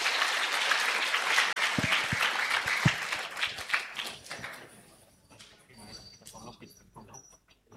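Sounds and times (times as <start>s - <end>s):
audience applause: 0.0s - 4.9s.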